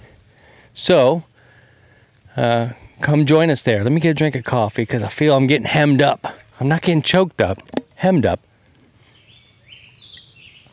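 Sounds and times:
speech: 0.8 - 1.3, 2.4 - 8.5
small bird chirping: 9.1 - 10.7.

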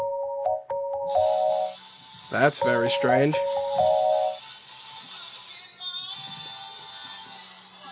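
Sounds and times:
cell phone ringing: 0.0 - 1.8, 2.6 - 4.4
speech: 2.3 - 3.9.

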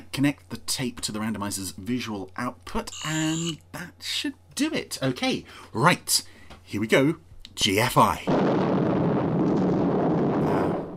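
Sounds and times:
speech: 0.2 - 8.7
atomic explosion sound effect: 8.2 - 10.9.

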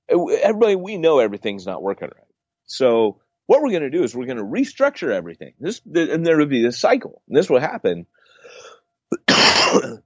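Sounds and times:
speech: 0.2 - 10.0
person coughing: 9.1 - 10.0.

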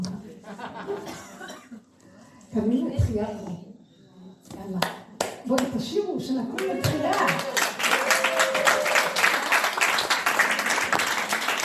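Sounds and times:
laughter: 0.3 - 1.5
speech: 2.5 - 3.7, 5.5 - 7.6
crowd applause: 6.6 - 11.6.

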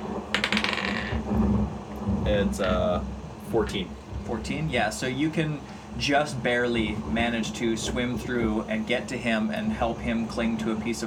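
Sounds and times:
die clattering across a table: 0.3 - 1.3
speech: 2.3 - 11.0.

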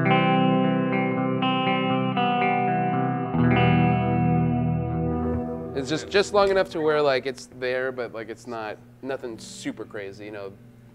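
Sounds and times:
clean electric guitar chords with hall reverb: 0.0 - 7.6
speech: 5.8 - 10.7.

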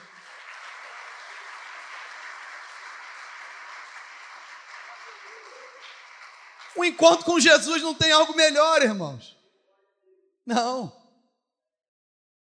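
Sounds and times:
loud audience applause: 0.0 - 8.9
speech: 6.8 - 9.4, 10.5 - 11.0.

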